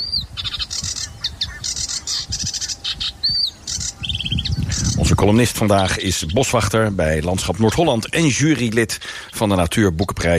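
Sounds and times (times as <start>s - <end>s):
sedge warbler song: 0.0s - 10.3s
speech: 5.2s - 10.3s.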